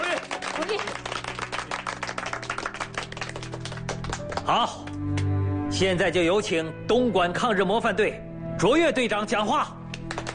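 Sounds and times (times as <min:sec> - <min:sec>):
group applause approving a proposal: 0:00.0 - 0:05.3, 0:09.9 - 0:10.3
speech: 0:00.6 - 0:01.1, 0:04.5 - 0:09.8.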